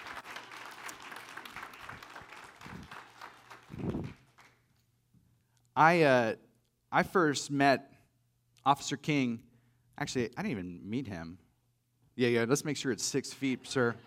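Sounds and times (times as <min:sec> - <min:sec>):
audience applause: 0:00.0 - 0:04.6
speech: 0:05.8 - 0:07.9, 0:08.6 - 0:11.4, 0:12.2 - 0:14.0.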